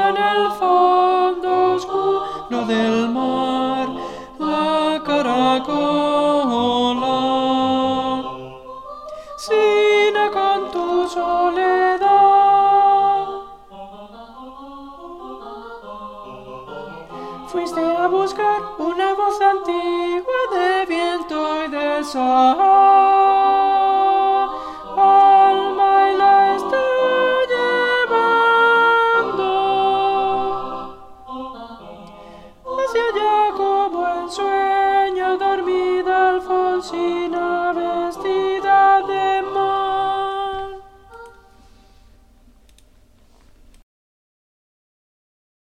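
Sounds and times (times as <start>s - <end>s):
contraltos singing: 0.0s - 41.7s.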